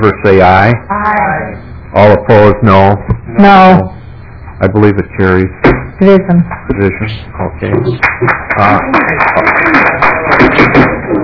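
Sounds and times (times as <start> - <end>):
speech: 0.0 - 4.0, 4.6 - 11.0
scattered applause in a committee room: 7.9 - 11.2.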